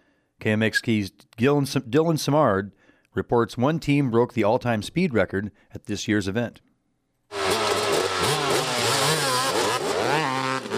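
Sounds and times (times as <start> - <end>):
speech: 0.4 - 6.7
dirt bike engine revving: 7.3 - 10.7.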